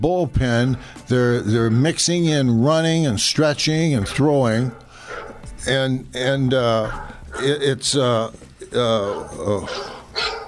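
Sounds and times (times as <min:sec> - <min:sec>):
speech: 0:00.0 - 0:04.8, 0:05.6 - 0:10.4
loose dog barking and yelping: 0:04.0 - 0:05.4, 0:06.8 - 0:07.6, 0:08.9 - 0:10.4.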